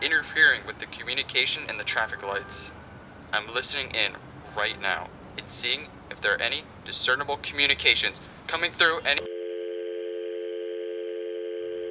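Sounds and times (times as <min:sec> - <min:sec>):
speech: 0:00.2 - 0:09.3
telephone dial tone after dropped call: 0:09.2 - 0:11.9.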